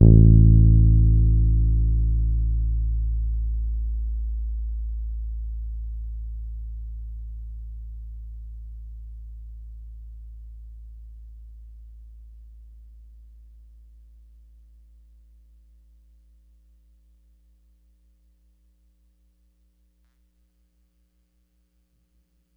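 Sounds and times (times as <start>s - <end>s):
Pedulla Thunderbass bass guitar E note played hard: 0.0s - 10.2s.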